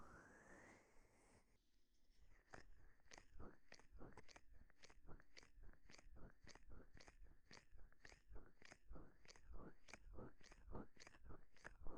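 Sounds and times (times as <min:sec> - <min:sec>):
ASMR ear cleaning in left ear: 0:02.5 - 0:11.9.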